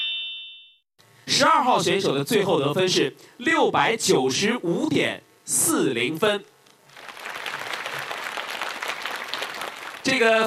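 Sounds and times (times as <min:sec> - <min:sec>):
speech: 0:01.4 - 0:06.5, 0:10.0 - 0:10.4
warm applause: 0:06.9 - 0:10.4.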